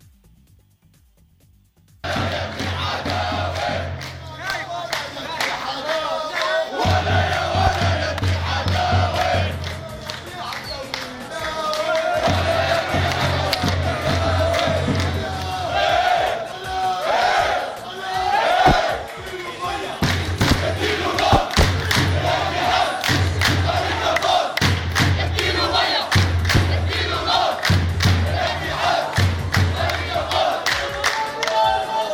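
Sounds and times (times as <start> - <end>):
stadium crowd of football fans chanting in unison: 2.0 - 32.1
low drumlike thump: 7.6 - 8.0, 18.6 - 19.0, 20.0 - 22.0, 26.5 - 27.0.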